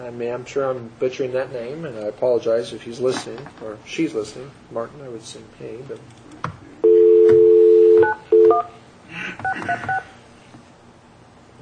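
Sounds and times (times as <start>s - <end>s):
speech: 0.1s - 6.2s
telephone dial tone: 6.8s - 8.7s
touch-tone keypad beeps as a telephone number is dialed: 6.8s - 8.7s, 9.4s - 10.0s.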